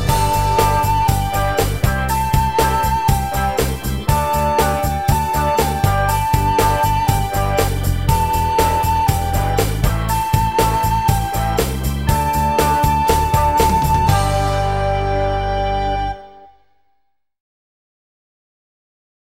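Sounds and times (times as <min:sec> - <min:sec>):
recorder playing: 0:00.0 - 0:16.9.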